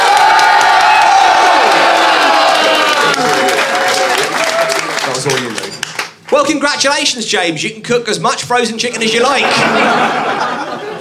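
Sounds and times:
studio audience applauding and cheering: 0.0s - 6.5s
speech: 6.5s - 10.5s
laughter: 9.0s - 11.0s.

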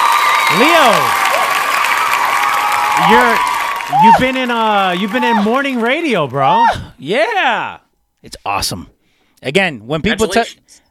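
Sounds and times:
crowd cheering and applause sound effect: 0.0s - 6.9s
speech: 0.5s - 1.2s, 3.0s - 10.8s.

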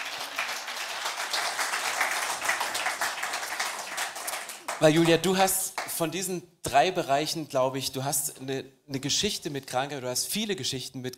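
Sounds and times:
audience applause: 0.0s - 6.0s
speech: 4.8s - 11.1s.

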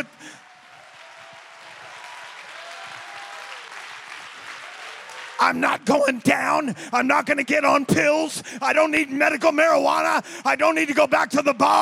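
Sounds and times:
crowd clapping hands: 0.0s - 6.2s
speech: 5.4s - 11.8s.

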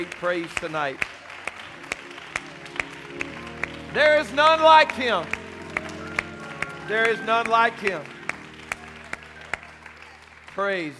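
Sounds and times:
speech: 0.0s - 1.2s, 3.9s - 5.4s, 6.9s - 8.1s, 10.6s - 10.9s
audience clapping in unison: 0.0s - 10.9s
scattered crowd noise: 1.1s - 10.9s.

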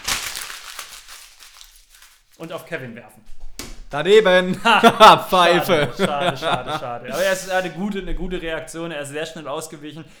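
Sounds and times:
paper script being crumpled: 0.0s - 2.5s
speech: 2.4s - 10.1s
laughter: 4.0s - 10.1s.

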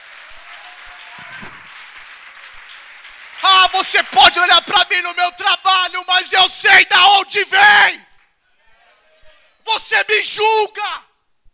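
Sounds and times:
audience applause: 0.0s - 5.0s
speech: 3.7s - 8.1s, 9.7s - 11.1s.

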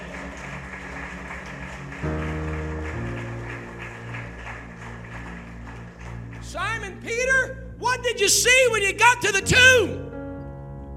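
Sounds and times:
audience clapping hands: 0.0s - 7.1s
sustained organ-like chords: 0.0s - 10.9s
speech: 6.5s - 10.0s.

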